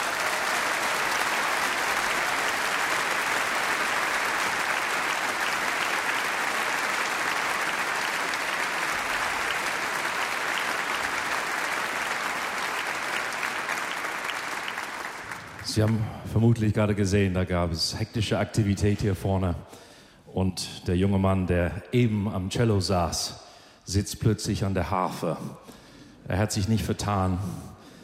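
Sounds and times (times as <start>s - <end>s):
audience applause: 0.0s - 16.1s
speech: 15.7s - 19.8s, 20.4s - 27.7s.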